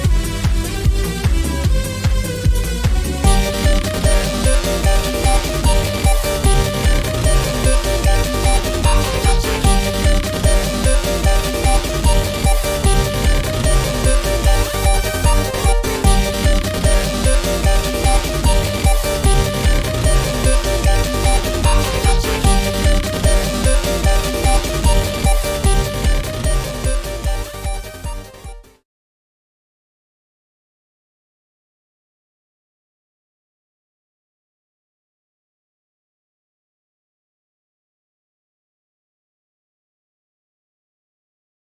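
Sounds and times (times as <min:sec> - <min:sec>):
game music beat: 0:00.0 - 0:28.8.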